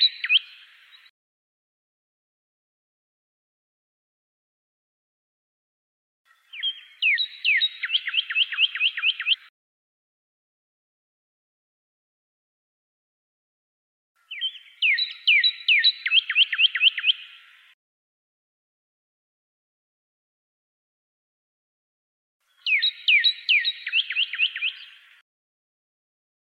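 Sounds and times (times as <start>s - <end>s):
pyrrhuloxia whistling down-slurred phrases: 6.6s - 9.5s, 14.3s - 17.4s, 22.6s - 25.0s.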